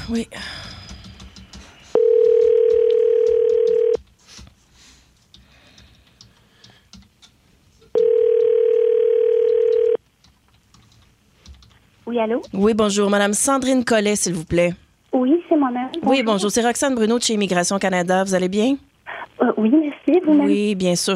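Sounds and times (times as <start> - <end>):
speech: 0.1 - 0.7, 12.2 - 21.1
telephone beep tones: 2.0 - 4.0, 8.0 - 10.0.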